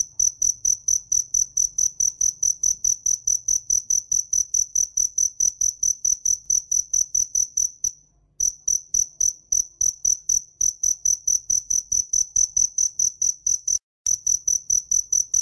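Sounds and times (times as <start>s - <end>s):
cricket chirping: 0.0s - 15.3s.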